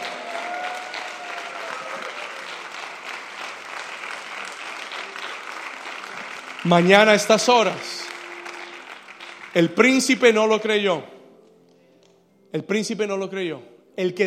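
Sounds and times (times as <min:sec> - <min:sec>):
audience applause: 0:00.0 - 0:10.4
speech: 0:06.6 - 0:07.9, 0:09.6 - 0:11.2, 0:12.5 - 0:14.2.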